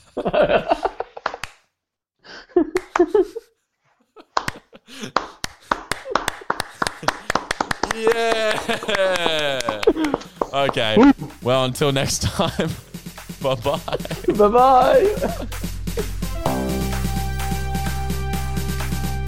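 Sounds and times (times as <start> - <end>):
laughter: 0.0 - 1.3, 2.6 - 3.5, 6.0 - 16.2
speech: 0.2 - 0.8, 10.6 - 16.1
group clapping: 1.2 - 1.7, 2.7 - 3.2, 4.3 - 11.4, 16.5 - 19.2
voices cheering: 7.9 - 11.7.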